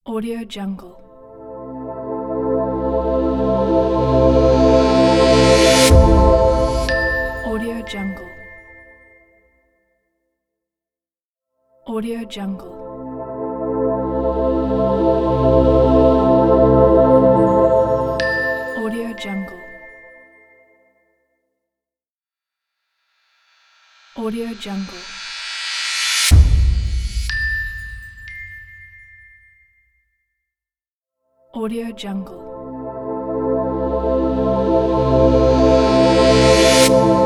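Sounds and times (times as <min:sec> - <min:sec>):
corporate logo reveal sound: 0:01.3 - 0:08.6, 0:12.8 - 0:19.0, 0:24.4 - 0:28.6, 0:32.5 - 0:37.2.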